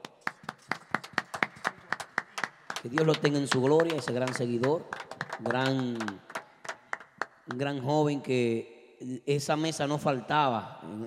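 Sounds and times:
hand clapping: 0:00.0 - 0:07.6
speech: 0:02.8 - 0:06.3, 0:07.5 - 0:11.0.

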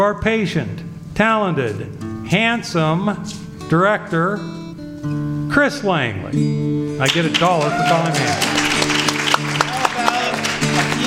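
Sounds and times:
speech: 0:00.0 - 0:08.9
applause for cast and crew: 0:07.0 - 0:11.0.

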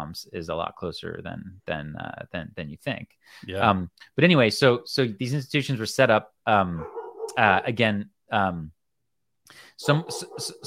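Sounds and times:
speech: 0:00.1 - 0:08.8, 0:09.5 - 0:10.6
dog howling and whining: 0:06.8 - 0:07.7, 0:09.9 - 0:10.6.

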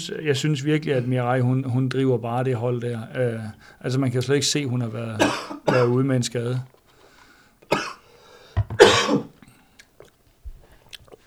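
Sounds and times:
speech: 0:00.0 - 0:06.8
person coughing after water went down the wrong pipe: 0:05.2 - 0:06.0, 0:07.7 - 0:08.0, 0:08.6 - 0:09.4
throat clearing: 0:05.2 - 0:06.0, 0:08.6 - 0:09.6.

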